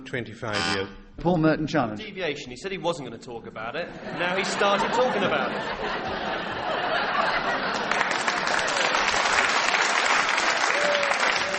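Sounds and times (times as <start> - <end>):
speech: 0.0 - 8.1
laughter: 3.9 - 9.8
audience applause: 5.2 - 11.5.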